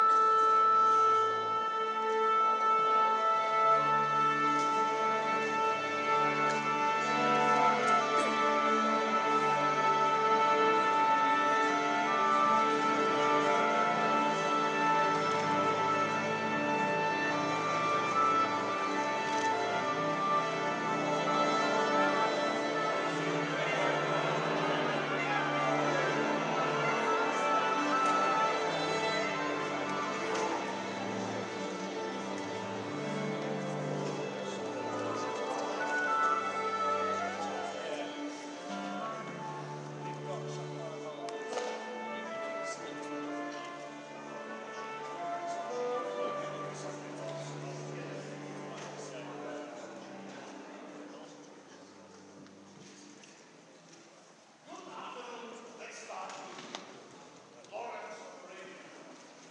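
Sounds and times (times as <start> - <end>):
orchestra tuning up: 0.0 - 59.4.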